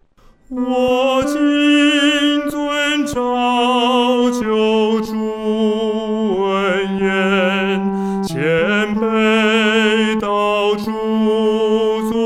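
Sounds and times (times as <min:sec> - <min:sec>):
solo singing third voice: 0:00.5 - 0:12.2.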